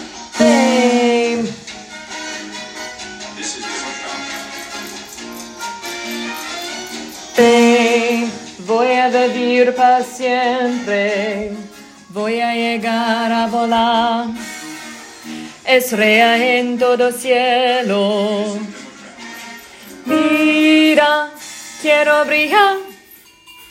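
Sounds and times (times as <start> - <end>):
tenor singing: 0.3 - 1.7, 6.1 - 14.4, 15.6 - 22.9.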